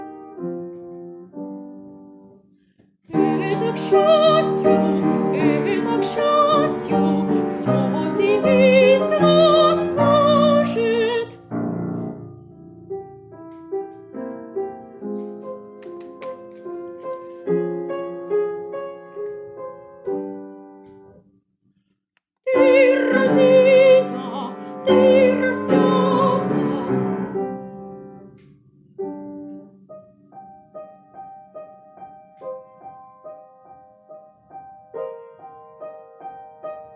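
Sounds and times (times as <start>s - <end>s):
soprano singing: 3.1s - 12.3s, 22.5s - 28.2s.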